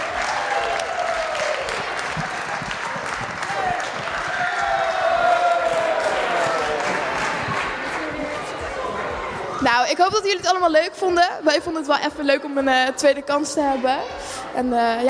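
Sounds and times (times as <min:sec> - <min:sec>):
cheers and whoops: 0:00.0 - 0:07.8
crowd applause: 0:00.0 - 0:09.6
speech: 0:09.7 - 0:15.0.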